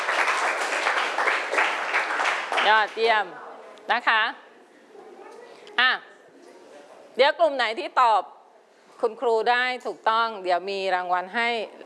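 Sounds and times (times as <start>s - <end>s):
students clapping for group 2 in a classroom: 0.0s - 3.0s
speech: 2.6s - 4.4s, 5.8s - 6.1s, 7.2s - 8.4s, 9.0s - 11.8s.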